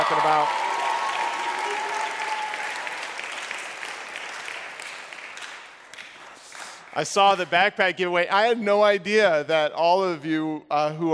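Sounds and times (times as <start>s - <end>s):
wild audience applause: 0.0s - 7.4s
speech: 7.0s - 11.1s.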